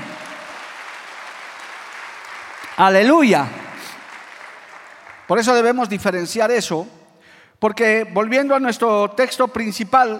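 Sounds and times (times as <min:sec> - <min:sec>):
audience applause: 0:00.0 - 0:05.3
speech: 0:02.8 - 0:03.6, 0:05.3 - 0:07.0, 0:07.6 - 0:10.1.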